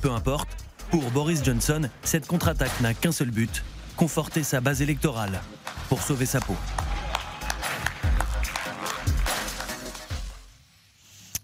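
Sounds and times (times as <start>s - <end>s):
speech: 0.0s - 6.8s
group clapping for health workers: 5.4s - 10.4s.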